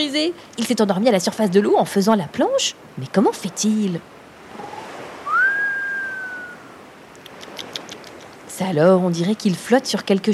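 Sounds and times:
speech: 0.0 - 4.2, 8.6 - 10.3
whistling snore effect of a sleeping professor in a cartoon: 4.6 - 6.7.

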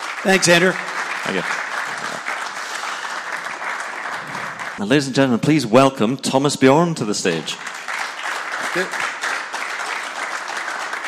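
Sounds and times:
audience applause: 0.0 - 4.9, 7.1 - 11.0
speech: 0.2 - 1.6, 4.8 - 7.8, 8.7 - 9.1.

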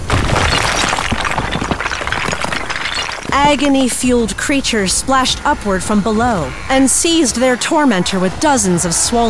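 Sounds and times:
transparent floor smashed open: 0.1 - 3.9
speech: 3.3 - 9.2.

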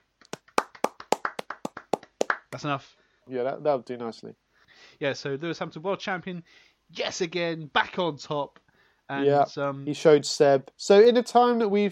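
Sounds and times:
round of applause: 0.3 - 2.6
speech: 2.5 - 11.9.

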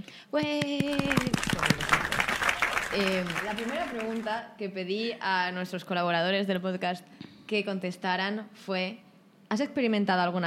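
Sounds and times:
speech: 0.3 - 1.9, 2.9 - 10.4
crowd applause: 0.8 - 4.4.

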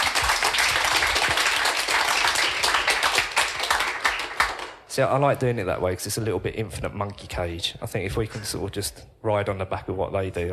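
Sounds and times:
audience applause for a panel: 0.0 - 4.8
speech: 5.0 - 10.5.

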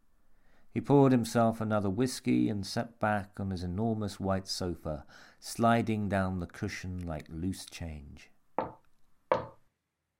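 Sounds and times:
speech: 0.7 - 8.8
knocks on a wooden door: 8.6 - 9.6.

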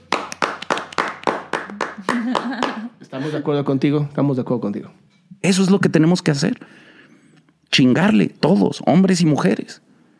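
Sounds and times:
audience clapping: 0.0 - 2.9
laughter: 2.0 - 3.4
speech: 3.1 - 6.9, 7.7 - 9.8.

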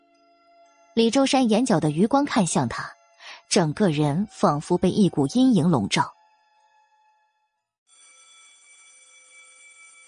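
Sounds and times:
speech: 1.0 - 6.2
school dismissal bell ringing: 8.1 - 10.0.

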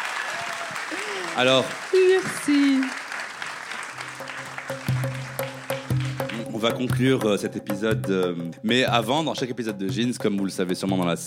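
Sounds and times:
audience applause: 0.0 - 6.8
speech: 1.4 - 3.0, 6.6 - 11.2.

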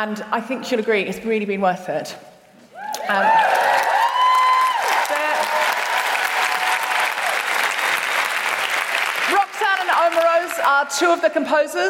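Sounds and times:
speech: 0.0 - 2.3, 3.1 - 3.8, 10.0 - 11.8
whoops and cheering voices: 2.7 - 7.5
crowd applause: 3.0 - 10.6.

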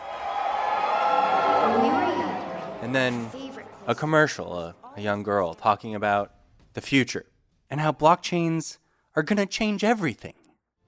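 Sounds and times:
scattered crowd cheering: 0.0 - 4.9
speech: 2.9 - 10.4.

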